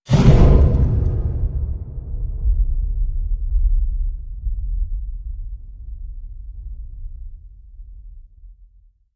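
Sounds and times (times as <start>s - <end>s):
low thundercloud hit: 0.1s - 7.1s.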